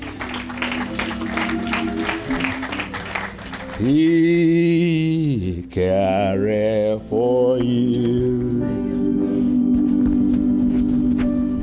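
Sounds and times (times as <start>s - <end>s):
audience applause: 0.0s - 4.6s
low sustained musical tone humming: 0.0s - 11.6s
speech: 3.8s - 4.7s, 5.8s - 8.1s.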